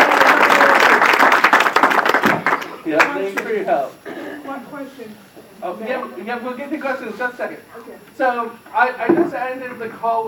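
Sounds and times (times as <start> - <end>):
audience applause for a guest on the phone: 0.0 - 3.6
speech: 2.9 - 4.1, 4.8 - 10.2.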